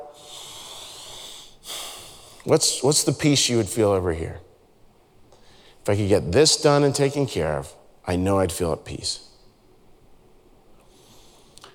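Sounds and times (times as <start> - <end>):
deep breath: 0.0 - 2.4, 5.3 - 5.8, 10.8 - 11.7
speech: 2.4 - 4.5, 5.8 - 9.3.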